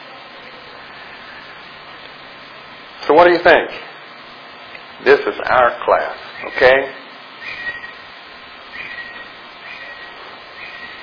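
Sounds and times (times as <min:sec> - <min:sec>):
speech: 0:03.0 - 0:03.9, 0:05.0 - 0:07.0
birds chirping: 0:06.2 - 0:11.0.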